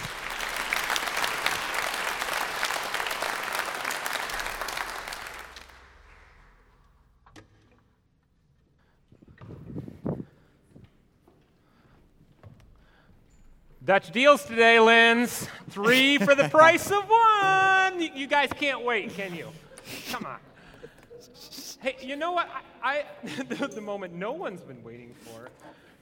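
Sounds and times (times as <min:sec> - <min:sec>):
audience applause: 0:00.0 - 0:06.8
speech: 0:13.9 - 0:20.4, 0:21.8 - 0:26.0
laughter: 0:15.8 - 0:18.2, 0:18.8 - 0:22.2, 0:23.1 - 0:23.8.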